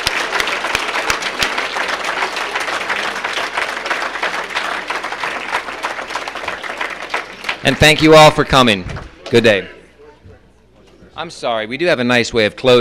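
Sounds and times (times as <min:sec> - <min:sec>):
audience applause: 0:00.0 - 0:08.5
speech: 0:07.6 - 0:09.8, 0:11.2 - 0:12.8.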